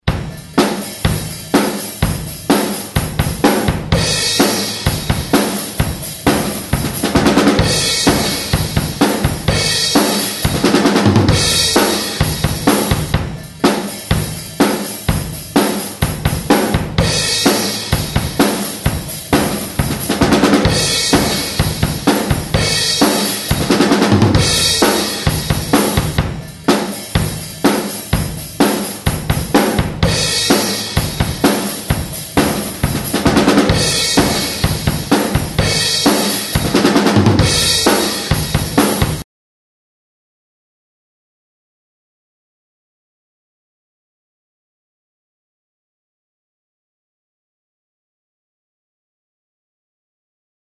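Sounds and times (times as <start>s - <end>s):
strong drum beat: 0.0s - 39.2s.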